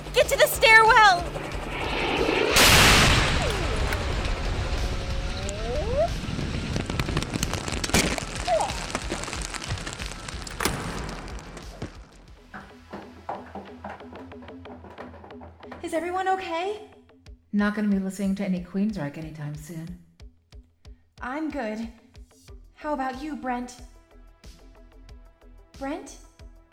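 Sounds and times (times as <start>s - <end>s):
speech: 0.2s - 1.4s, 17.6s - 20.0s, 21.2s - 22.0s, 22.8s - 23.9s, 25.8s - 26.3s
explosions: 1.4s - 12.3s
rocket launcher firing: 1.6s - 12.2s
rumbling debris: 1.9s - 12.4s.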